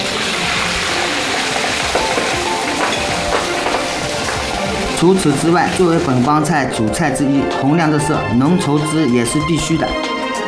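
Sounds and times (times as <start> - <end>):
hot oil sizzling around a duck brushed with soy sauce, deep-frying: 0.0 - 8.0
speech: 5.0 - 10.1.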